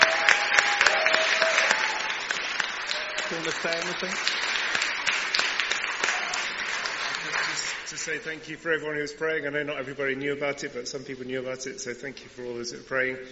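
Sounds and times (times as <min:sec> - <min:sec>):
audience applause: 0:00.0 - 0:08.5
speech: 0:03.3 - 0:04.4, 0:07.9 - 0:13.3.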